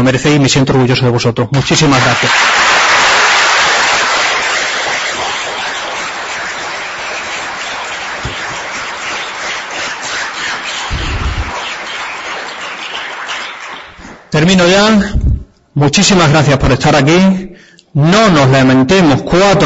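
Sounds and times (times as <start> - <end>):
speech: 0.0 - 2.8, 14.4 - 15.2, 15.8 - 19.6
audience applause: 1.6 - 14.4.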